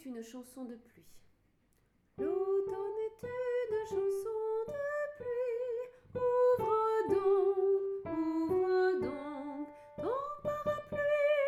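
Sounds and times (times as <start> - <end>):
song: 2.2 - 4.4, 6.2 - 11.3.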